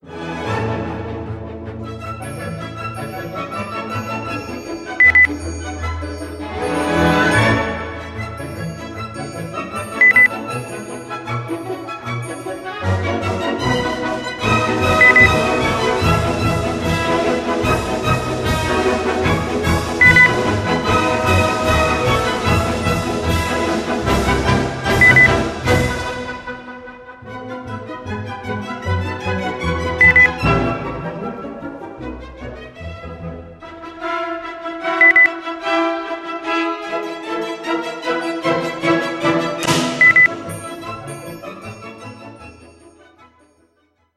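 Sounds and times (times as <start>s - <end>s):
classical polka: 5.0s - 41.7s.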